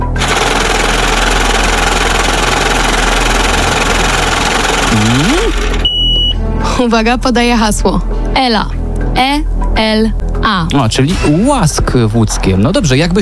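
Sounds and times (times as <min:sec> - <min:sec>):
lottery drawing machine starting up: 0:00.0 - 0:06.3
speech: 0:06.8 - 0:13.2.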